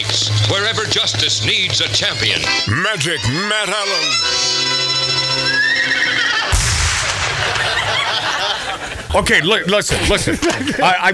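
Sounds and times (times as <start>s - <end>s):
speech: 0.0s - 4.8s, 8.8s - 11.1s
hoofbeats of a galloping golden palomino horse: 0.0s - 6.5s
laughter: 2.2s - 4.2s, 5.6s - 11.1s.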